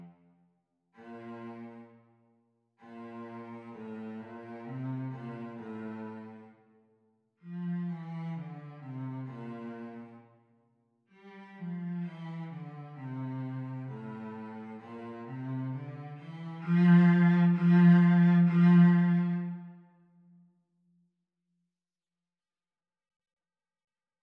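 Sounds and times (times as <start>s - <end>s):
cello playing the teacher part of a sea song duet at practice speed: 1.0s - 2.0s, 2.8s - 6.6s, 7.4s - 10.2s, 11.1s - 19.8s.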